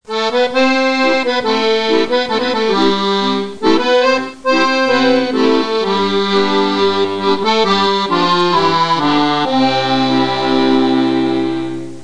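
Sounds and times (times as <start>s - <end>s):
accordion: 0.0s - 12.0s.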